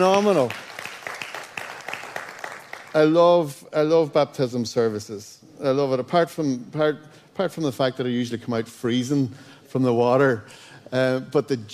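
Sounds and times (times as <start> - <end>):
speech: 0.0 - 0.6, 2.9 - 11.7
audience applause: 0.0 - 3.0.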